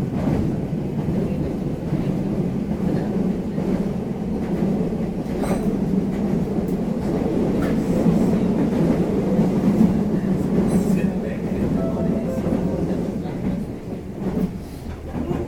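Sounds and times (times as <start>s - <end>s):
6600 series train running: 0.0s - 15.4s.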